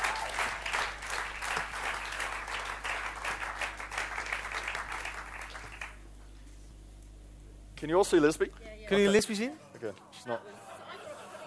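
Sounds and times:
audience applause for a panel and a band: 0:00.0 - 0:06.0
speech: 0:07.8 - 0:10.7
laughter: 0:10.4 - 0:11.4.

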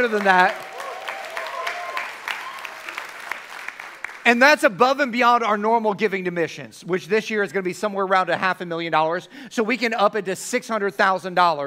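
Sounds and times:
speech: 0:00.0 - 0:00.6, 0:04.2 - 0:11.6
audience golf clap: 0:00.0 - 0:04.4.

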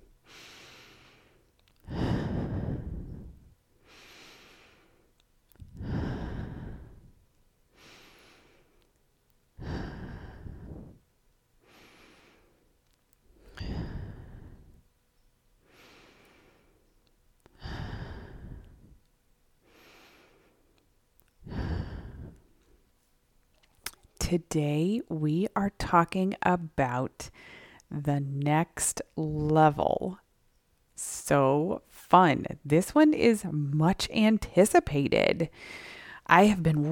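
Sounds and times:
slow deep breathing in through the nose and out through the mouth: 0:00.2 - 0:08.9, 0:09.6 - 0:14.9, 0:15.6 - 0:16.9, 0:17.5 - 0:20.7, 0:21.4 - 0:22.8, 0:27.3 - 0:27.9, 0:35.5 - 0:36.3
speech: 0:24.3 - 0:30.2, 0:31.0 - 0:36.9.

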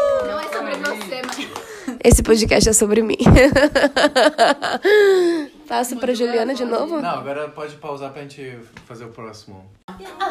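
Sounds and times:
hand clapping: 0:00.1 - 0:02.7
speech: 0:02.1 - 0:10.2
laughter: 0:03.3 - 0:05.4.

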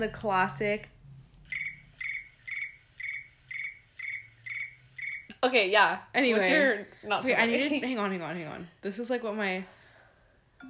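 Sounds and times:
speech: 0:00.0 - 0:00.9, 0:05.4 - 0:09.8
phone alarm ringtone: 0:01.4 - 0:05.3.

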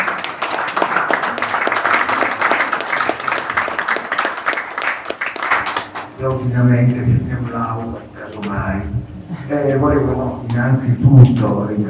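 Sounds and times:
audience applause for the professor: 0:00.0 - 0:06.4
speech: 0:06.2 - 0:11.8.

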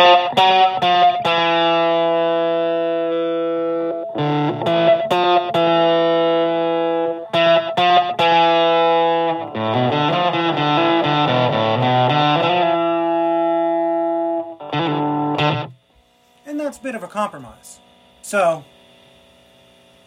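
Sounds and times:
electric guitar through Tech21 Fly Rig 5 plexi drive, tone knob lowered: 0:00.0 - 0:15.9
speech: 0:17.2 - 0:18.7.

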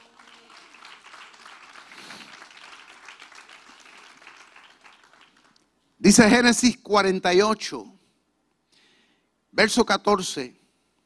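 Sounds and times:
audience applause: 0:00.0 - 0:05.6
speech: 0:06.0 - 0:08.0, 0:09.6 - 0:10.6.

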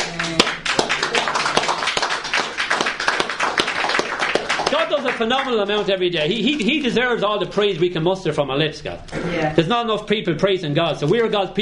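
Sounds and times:
audience round of applause: 0:00.0 - 0:06.0
speech: 0:04.9 - 0:11.6.

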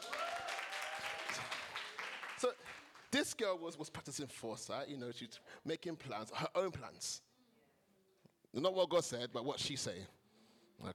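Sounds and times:
audience clapping: 0:00.0 - 0:03.1
speech: 0:02.4 - 0:07.3, 0:08.5 - 0:10.2, 0:10.8 - 0:10.9.

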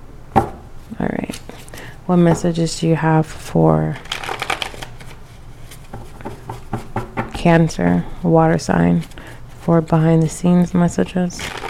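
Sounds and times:
speech: 0:01.0 - 0:01.4, 0:02.1 - 0:04.1, 0:07.4 - 0:11.5
tarot cards being shuffled: 0:01.2 - 0:01.8, 0:04.0 - 0:06.9, 0:08.8 - 0:09.7, 0:11.4 - 0:11.6.

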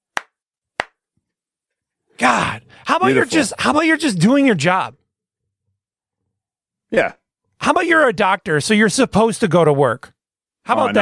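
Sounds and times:
single person clapping: 0:00.1 - 0:01.0
speech: 0:02.2 - 0:05.0, 0:06.9 - 0:11.0.

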